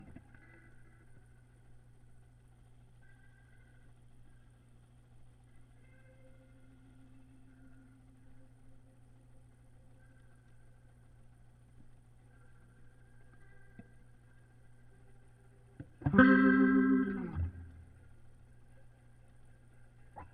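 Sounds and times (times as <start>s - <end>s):
guitar through Leslie rotary speaker: 0.0s - 1.3s, 5.5s - 20.3s.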